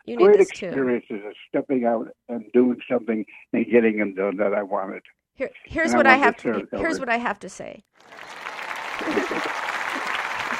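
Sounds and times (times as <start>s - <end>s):
speech: 0.1s - 9.5s
laughter: 0.2s - 4.8s, 5.9s - 7.0s, 8.8s - 10.5s
big stadium crowd applause sound effect: 8.0s - 10.5s.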